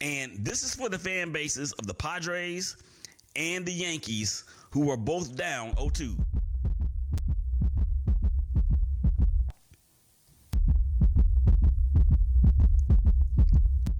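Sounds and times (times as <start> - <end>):
speech: 0.0 - 6.4
fast pounding heartbeat sound effect: 5.7 - 9.5, 10.6 - 13.9.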